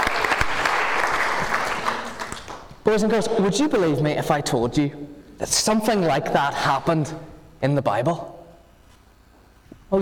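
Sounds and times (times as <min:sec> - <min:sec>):
audience applause: 0:00.0 - 0:02.7
speech: 0:02.8 - 0:08.4.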